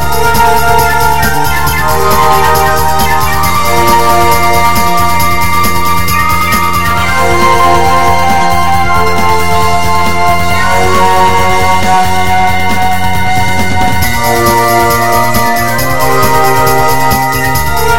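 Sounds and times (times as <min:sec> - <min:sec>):
drum and bass remix music: 0:00.0 - 0:17.9.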